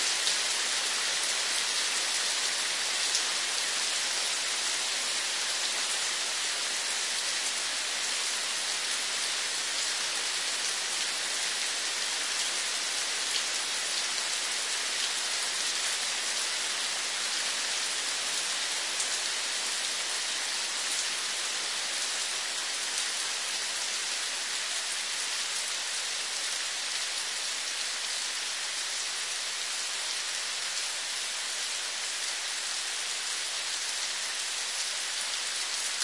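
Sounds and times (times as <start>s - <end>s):
moderately strong first rain: 0.0s - 36.0s.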